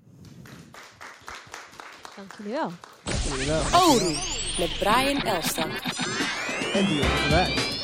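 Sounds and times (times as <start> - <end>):
audience applause: 0.7 - 3.1
speech: 2.2 - 7.7.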